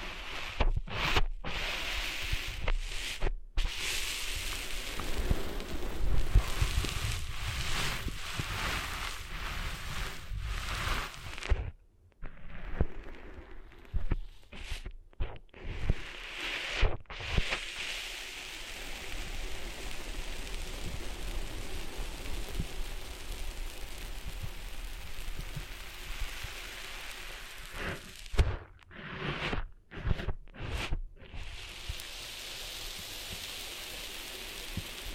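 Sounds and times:
rustling and scratching of sand cleaned out of an ear: 0.3s - 11.7s, 12.6s - 35.1s
crackly bursts: 3.7s - 15.4s, 17.1s - 28.9s, 31.4s - 35.1s.

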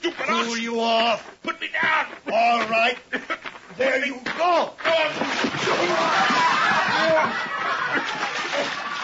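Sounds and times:
speech: 0.3s - 8.8s
chuckling: 2.2s - 3.6s, 5.8s - 9.0s
man thrown into water, splashing: 4.9s - 9.0s.

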